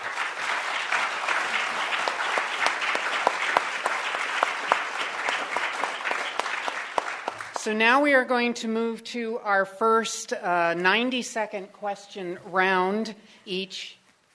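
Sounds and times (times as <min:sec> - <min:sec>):
audience applause: 0:00.0 - 0:07.6
speech: 0:07.6 - 0:14.0.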